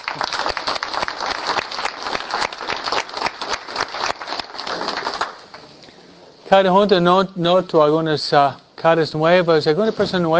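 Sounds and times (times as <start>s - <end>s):
audience applause: 0.0s - 5.7s
speech: 6.5s - 10.3s.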